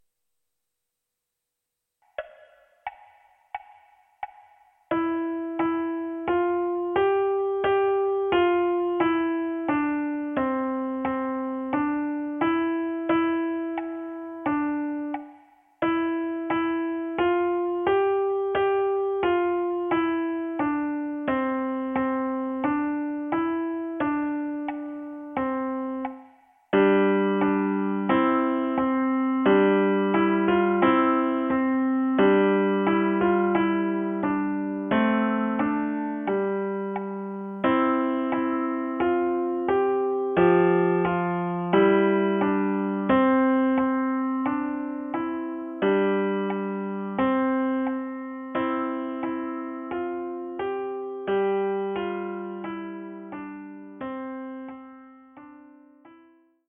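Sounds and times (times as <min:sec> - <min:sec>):
piano: 0:02.0 - 0:56.6.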